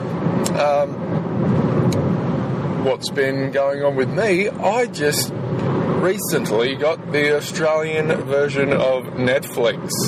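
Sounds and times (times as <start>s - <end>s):
car driving, road and engine rumble in a voicemail recording: 0.0s - 10.0s
speech: 0.6s - 1.6s, 2.8s - 10.0s.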